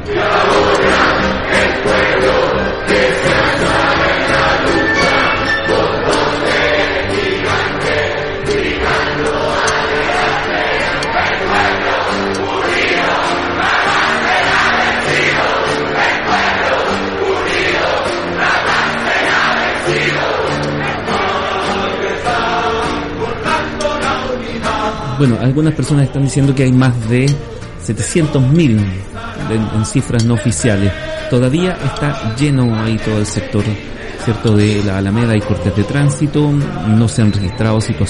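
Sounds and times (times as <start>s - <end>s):
huge rally crowd singing an anthem in unison: 0.0s - 38.0s
speech: 25.2s - 38.0s.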